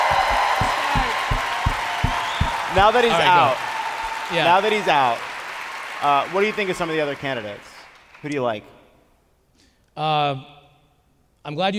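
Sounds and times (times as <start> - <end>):
audience applause: 0.0 - 8.4
speech: 2.8 - 3.7, 4.3 - 5.3, 6.0 - 8.8, 10.0 - 10.6, 11.4 - 11.7.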